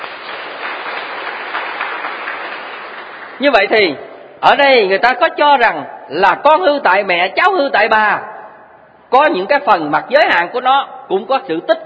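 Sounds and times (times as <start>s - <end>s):
students applauding in a classroom: 0.0s - 3.5s
speech: 3.4s - 8.3s, 9.1s - 11.8s.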